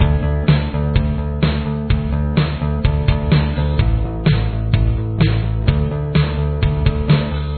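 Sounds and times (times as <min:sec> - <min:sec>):
bass: 0:00.0 - 0:07.5.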